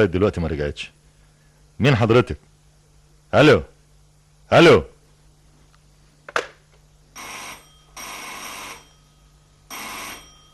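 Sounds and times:
speech: 0.0s - 1.0s, 1.8s - 2.5s, 3.3s - 3.7s, 4.5s - 4.9s
electromechanical telephone bell ringing: 7.2s - 10.5s.

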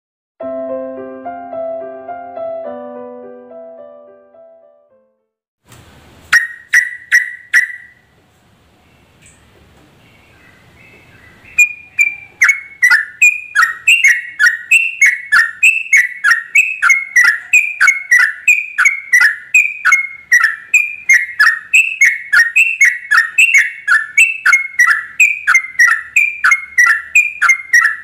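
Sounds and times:
Yellow-vented bulbul singing rapid-fire tembakan style chirps: 11.5s - 28.0s.

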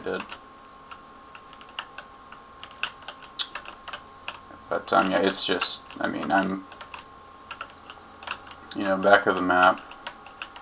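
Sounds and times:
speech: 0.0s - 0.4s, 4.7s - 6.7s, 8.7s - 9.9s
faint steady hum: 0.0s - 10.6s
computer keyboard clicking: 0.2s - 0.4s, 1.4s - 4.4s, 6.7s - 8.6s, 9.4s - 10.6s.

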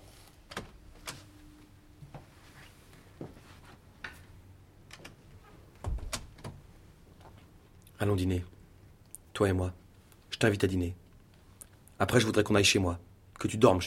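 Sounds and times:
door being pulled shut: 5.8s - 6.6s
speech: 8.0s - 8.6s, 9.4s - 9.8s, 10.4s - 11.0s, 12.0s - 13.8s.

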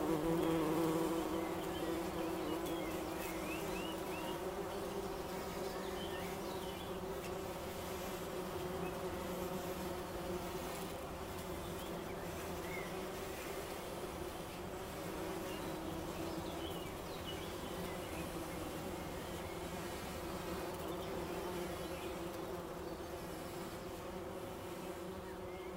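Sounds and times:
bumblebee humming: 0.0s - 25.7s.

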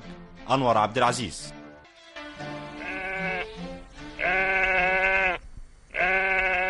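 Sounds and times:
speech: 0.5s - 1.6s
Eid sacrificial sheep bleating in a 1962 Egyptian radio comedy: 2.6s - 6.6s.

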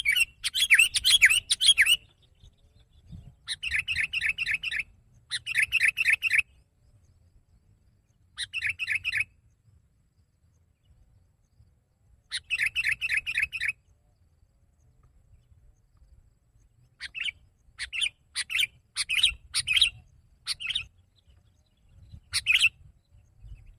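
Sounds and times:
sooty-headed bulbul singing: 0.0s - 6.6s, 8.0s - 9.6s, 12.2s - 14.0s, 16.5s - 23.7s.

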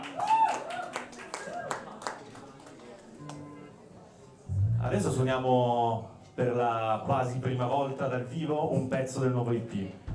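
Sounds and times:
people clapping for a band member at a live gig: 0.0s - 3.6s
speech: 4.8s - 10.0s.

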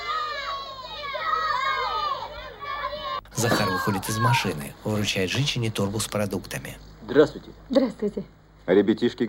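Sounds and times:
children running and calling out: 0.0s - 4.7s
speech: 3.4s - 9.2s.

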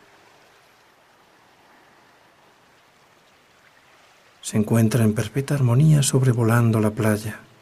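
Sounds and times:
ocean waves on a beach: 0.0s - 7.6s
speech: 4.5s - 7.5s.

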